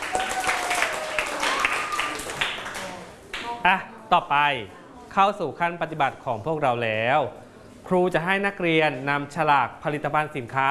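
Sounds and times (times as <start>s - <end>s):
classroom applause: 0.0s - 3.4s
speech: 3.6s - 10.6s.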